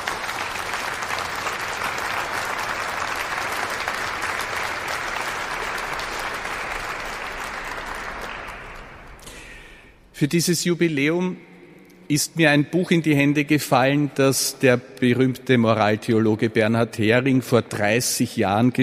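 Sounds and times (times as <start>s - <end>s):
audience applause: 0.0s - 9.7s
speech: 10.2s - 11.5s, 12.1s - 18.8s.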